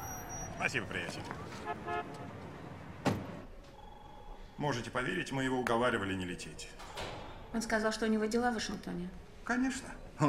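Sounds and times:
cars moving along a street: 0:00.0 - 0:03.6
speech: 0:00.6 - 0:02.4, 0:04.6 - 0:10.2
car horn toot: 0:01.6 - 0:02.3.

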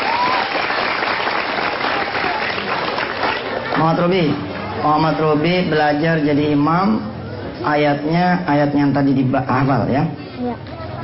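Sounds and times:
whistles and cheers: 0:00.0 - 0:00.9
audience applause: 0:00.0 - 0:04.7
speech: 0:03.8 - 0:10.2.

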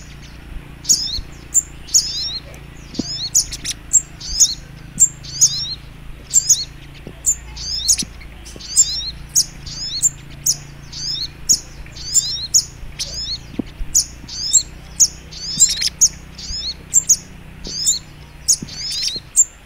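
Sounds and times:
Little Spiderhunter twittering song: 0:00.0 - 0:19.6.

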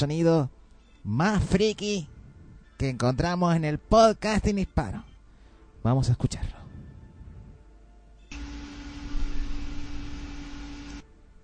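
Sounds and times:
speech: 0:00.0 - 0:02.1, 0:02.8 - 0:05.1, 0:05.8 - 0:06.6
electric fan whirring: 0:08.3 - 0:11.4.

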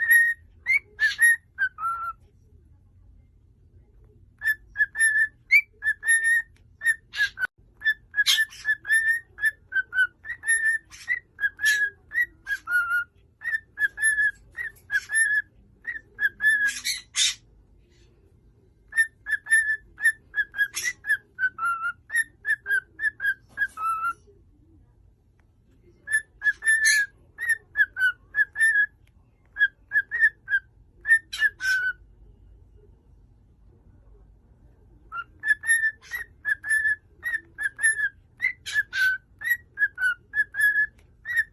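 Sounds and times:
cockatiel whistling: 0:00.0 - 0:02.2, 0:04.4 - 0:17.4, 0:18.9 - 0:24.2, 0:26.1 - 0:28.9, 0:29.5 - 0:32.0, 0:35.1 - 0:41.5.

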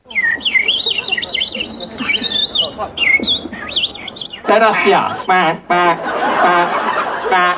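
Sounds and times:
person whistling an imitation of a European robin's song: 0:00.0 - 0:05.9
laughter: 0:00.0 - 0:07.5
speech: 0:02.8 - 0:03.8, 0:04.5 - 0:07.5.

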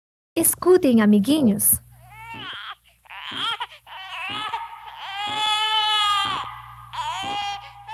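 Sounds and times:
speech: 0:00.4 - 0:01.8
infant crying: 0:02.0 - 0:07.9.

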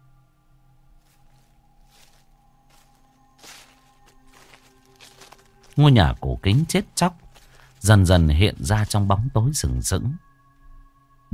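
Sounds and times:
footsteps on dry leaves: 0:01.0 - 0:09.9
speech: 0:05.8 - 0:07.2, 0:07.8 - 0:10.3.

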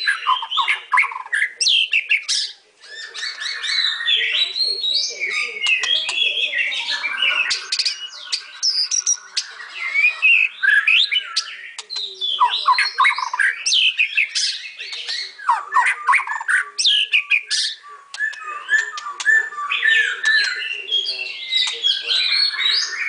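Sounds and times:
white-rumped shama song for training songbirds: 0:00.0 - 0:23.0.

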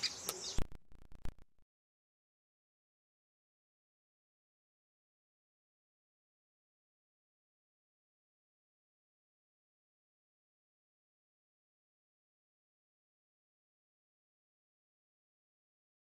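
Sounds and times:
hairy woodpecker sharp high calls: 0:00.0 - 0:00.6.

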